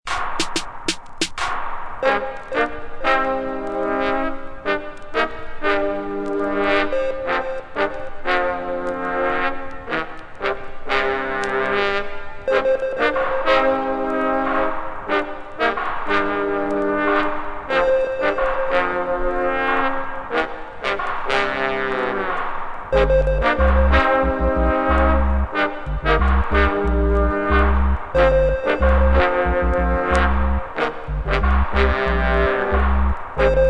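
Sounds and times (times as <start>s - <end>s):
horns: 1.4s - 33.6s.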